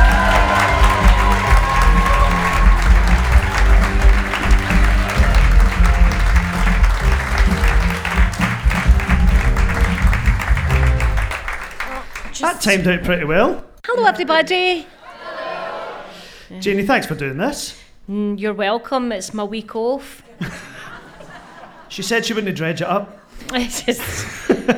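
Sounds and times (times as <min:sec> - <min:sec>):
music track: 0:00.0 - 0:12.1
laughter: 0:00.0 - 0:12.2, 0:15.0 - 0:16.1, 0:20.3 - 0:22.0, 0:23.8 - 0:24.7
audience applause welcoming a guest onto a show: 0:00.0 - 0:13.0
speech: 0:12.6 - 0:15.0, 0:16.6 - 0:20.7, 0:21.9 - 0:24.7.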